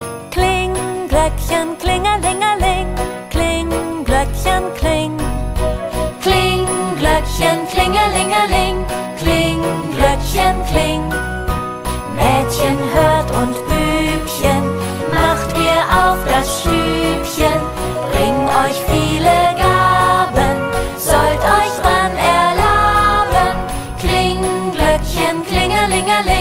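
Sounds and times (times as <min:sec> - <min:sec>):
German Christmas song: 0:00.0 - 0:26.3.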